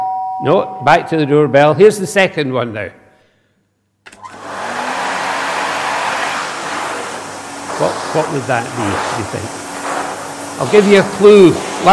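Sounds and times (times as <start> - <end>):
speech: 0.4 - 3.0, 7.8 - 9.6, 10.6 - 11.9
vacuum cleaner running: 4.1 - 11.9.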